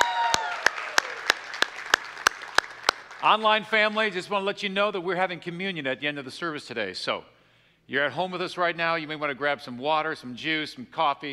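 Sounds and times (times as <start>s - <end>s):
crowd applauding and cheering: 0.0s - 4.2s
rhythmic unison claps: 0.0s - 4.2s
speech: 3.2s - 11.3s.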